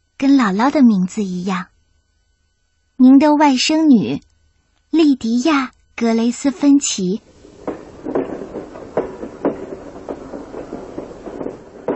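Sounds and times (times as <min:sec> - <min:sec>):
speech: 0:00.2 - 0:01.7, 0:03.0 - 0:04.3, 0:04.9 - 0:07.3
train clattering on rails: 0:07.5 - 0:11.9.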